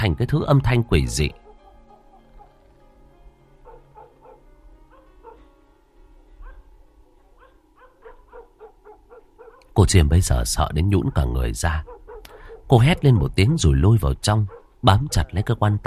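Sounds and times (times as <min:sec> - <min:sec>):
speech: 0:00.0 - 0:01.4, 0:09.9 - 0:12.0, 0:12.7 - 0:15.8
dog barking: 0:01.4 - 0:02.5, 0:03.6 - 0:05.5, 0:06.4 - 0:09.8, 0:11.0 - 0:13.1, 0:14.4 - 0:15.5.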